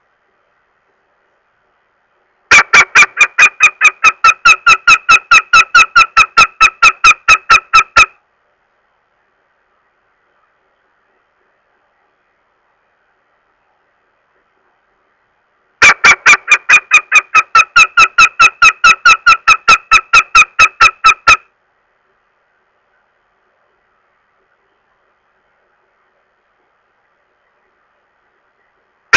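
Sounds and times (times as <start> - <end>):
northern goshawk uttering harsh nasal kek calls: 2.5 - 8.2, 15.8 - 21.4.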